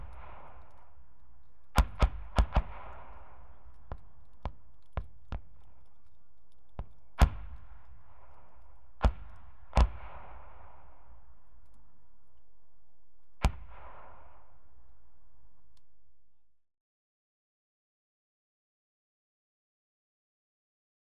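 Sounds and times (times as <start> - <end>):
81mm medium mortar firing: 1.7 - 6.0, 6.7 - 11.2, 13.4 - 14.6.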